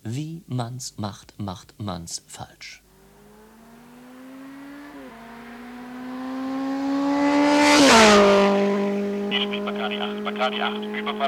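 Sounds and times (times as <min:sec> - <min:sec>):
speech: 0:00.0 - 0:02.8, 0:10.0 - 0:11.2
motorcycle engine revving and speeding away: 0:02.8 - 0:11.2.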